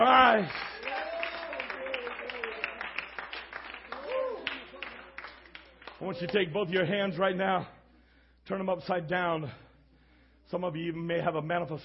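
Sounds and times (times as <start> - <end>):
audience hand clapping: 0.0 - 6.4
speech: 0.4 - 0.7, 6.1 - 7.8, 8.5 - 9.6, 10.5 - 11.8.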